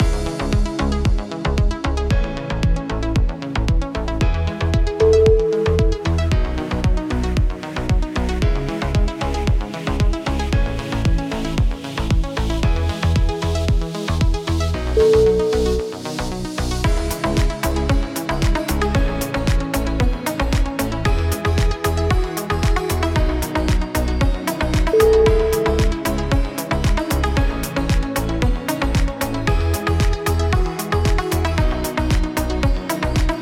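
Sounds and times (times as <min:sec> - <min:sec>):
uplifting music: 0:00.0 - 0:33.4.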